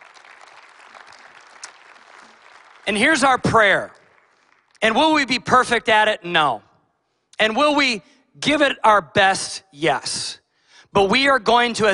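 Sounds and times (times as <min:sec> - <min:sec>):
crowd applauding: 0:00.0 - 0:05.2
speech: 0:02.9 - 0:04.0, 0:04.8 - 0:06.7, 0:07.4 - 0:11.9.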